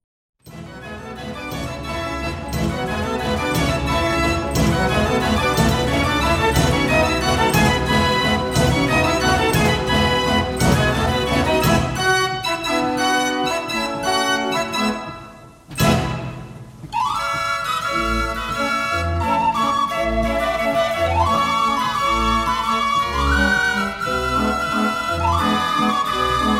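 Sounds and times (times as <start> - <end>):
Dutch street barrel organ playing: 0.6 - 16.4, 17.0 - 26.5.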